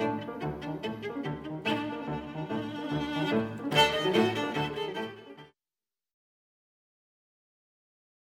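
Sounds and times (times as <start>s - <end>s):
viola sonata: 0.0s - 5.6s.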